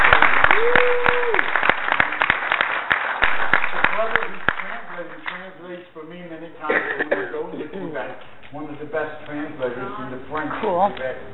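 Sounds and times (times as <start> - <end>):
person whooping: 0.0 - 1.6
audience clapping greeting guests at a gathering: 0.0 - 5.8
speech: 9.1 - 11.3.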